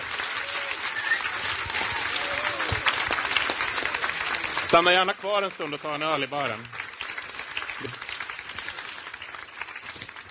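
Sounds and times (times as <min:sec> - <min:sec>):
audience applause: 0:00.0 - 0:10.2
faint whistles and cheers: 0:00.1 - 0:03.1
speech: 0:04.7 - 0:06.8, 0:07.8 - 0:08.0.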